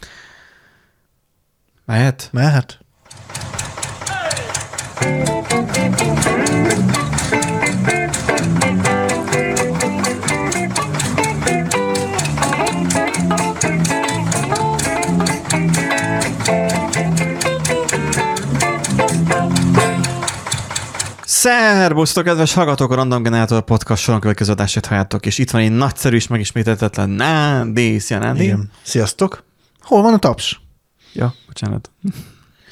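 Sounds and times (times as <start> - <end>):
speech: 1.9 - 2.8, 5.0 - 8.9, 21.4 - 32.7
upbeat instrumental podcast intro music: 4.0 - 21.1.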